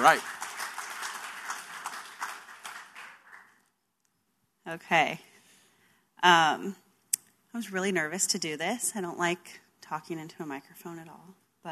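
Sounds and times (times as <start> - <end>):
speech: 0.0 - 0.4, 4.7 - 5.3, 6.2 - 6.8, 7.6 - 11.7
audience applause: 0.0 - 3.6.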